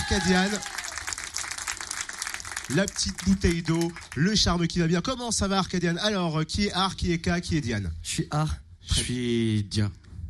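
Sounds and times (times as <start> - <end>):
audience applause: 0.0 - 4.3
speech: 0.1 - 0.8, 2.7 - 10.0.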